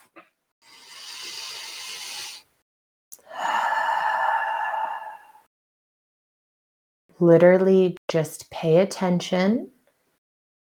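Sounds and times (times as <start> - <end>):
person breathing deeply: 0.6 - 2.6, 3.2 - 5.5
speech: 7.2 - 9.8.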